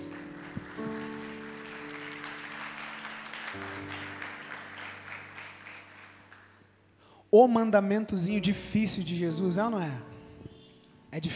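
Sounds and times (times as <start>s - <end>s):
audience applauding: 0.0s - 6.9s
speech: 7.4s - 10.1s, 11.1s - 11.3s.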